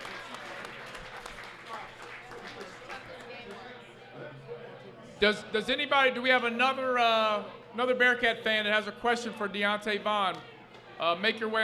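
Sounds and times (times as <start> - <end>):
audience applause: 0.0 - 3.7
speech: 5.2 - 11.6.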